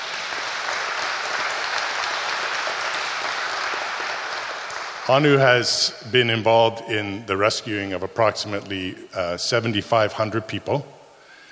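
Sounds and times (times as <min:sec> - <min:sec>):
audience applause: 0:00.0 - 0:05.6
speech: 0:05.1 - 0:11.0.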